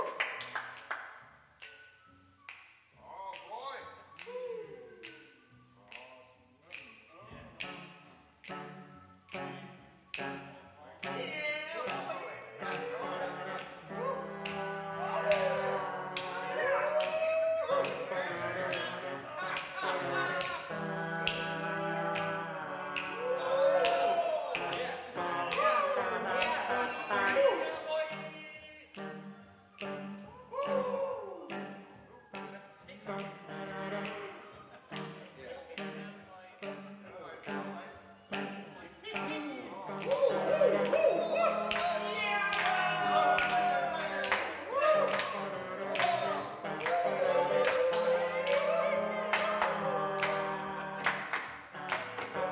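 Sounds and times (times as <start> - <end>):
jazz club music: 0.2 - 52.4.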